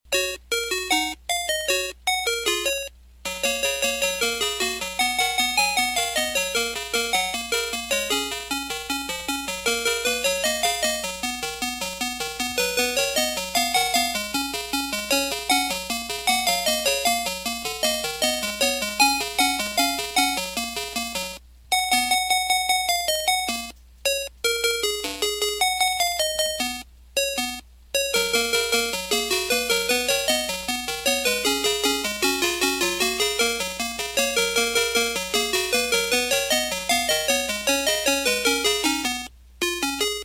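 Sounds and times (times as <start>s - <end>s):
arcade game music on radio: 0.1s - 40.2s.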